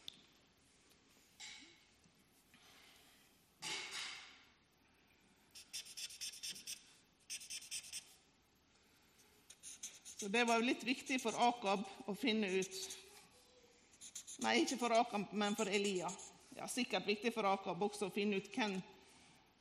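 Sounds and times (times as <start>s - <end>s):
pen writing on paper: 5.6s - 8.1s, 9.5s - 11.5s, 12.3s - 13.1s, 14.0s - 14.8s, 15.4s - 16.3s
speech: 10.2s - 13.0s, 14.4s - 19.0s.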